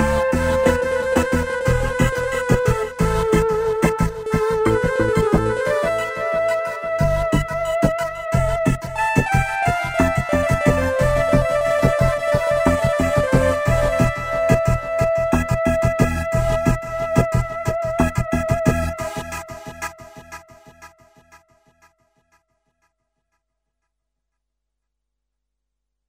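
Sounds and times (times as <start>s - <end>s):
flute and basso continuo sonata adagio: 0.0s - 20.0s.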